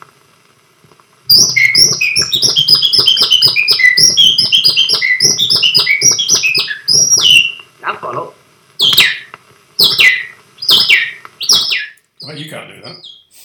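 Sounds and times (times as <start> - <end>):
man whistling an imitation of birdsong: 1.3 - 7.6, 9.8 - 12.4
speech: 1.4 - 2.5.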